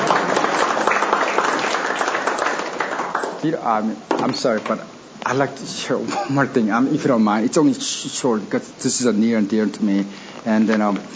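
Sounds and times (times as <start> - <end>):
crowd applauding: 0.0 - 3.6
speech: 3.4 - 11.1.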